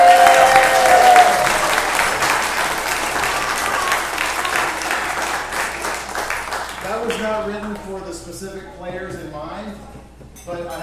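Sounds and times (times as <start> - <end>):
audience applause for young performers after a concert piece: 0.0 - 8.1.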